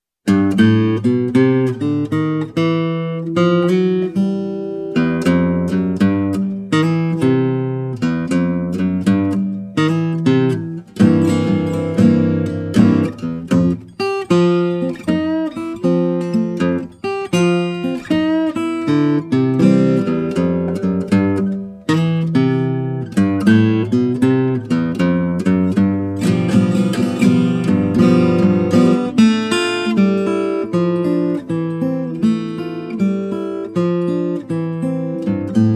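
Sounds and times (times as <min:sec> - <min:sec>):
blues in A minor: 0:00.3 - 0:35.7.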